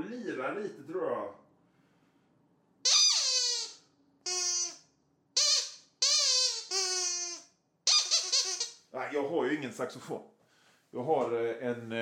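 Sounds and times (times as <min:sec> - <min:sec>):
speech: 0:00.3 - 0:01.4, 0:08.9 - 0:12.0
old bicycle horn squeaking: 0:02.9 - 0:04.8, 0:05.4 - 0:08.8.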